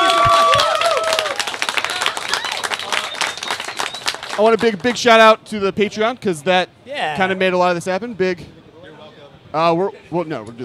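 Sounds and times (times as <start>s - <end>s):
audience applause: 0.0s - 5.0s
speech: 4.4s - 8.6s, 9.5s - 10.6s.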